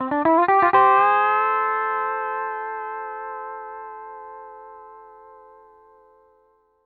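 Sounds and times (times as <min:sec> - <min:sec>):
country music loop at 120 BPM: 0:00.0 - 0:02.9.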